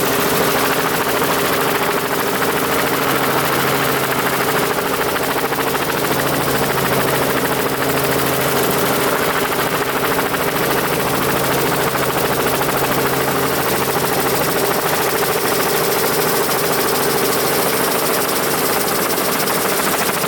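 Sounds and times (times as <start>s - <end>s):
helicopter blades: 0.0s - 20.2s.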